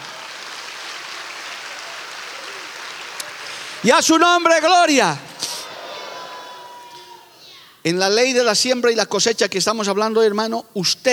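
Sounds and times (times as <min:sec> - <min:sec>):
audience applause: 0:00.0 - 0:07.2
speech: 0:03.8 - 0:05.3, 0:07.8 - 0:11.1.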